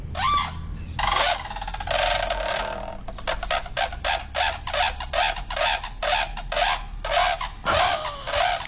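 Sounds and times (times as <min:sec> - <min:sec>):
brolga trumpeting calls: 0:00.1 - 0:08.6.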